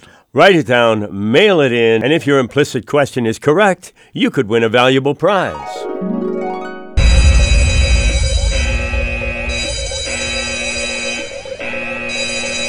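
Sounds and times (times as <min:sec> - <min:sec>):
speech: 0:00.3 - 0:06.2
alarm bell ringing: 0:07.0 - 0:12.6.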